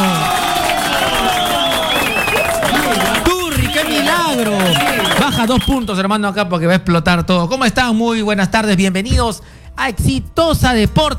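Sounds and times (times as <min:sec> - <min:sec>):
crowd applauding: 0:00.0 - 0:06.0
speech: 0:05.4 - 0:11.1.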